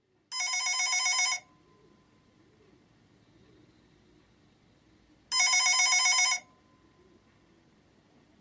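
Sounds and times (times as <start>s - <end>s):
telephone: 0.3s - 1.7s, 5.3s - 6.6s.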